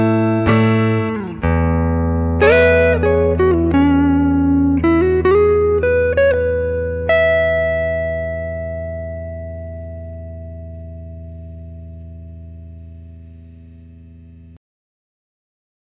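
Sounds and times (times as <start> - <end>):
neck pickup tone: 0.0 - 14.4.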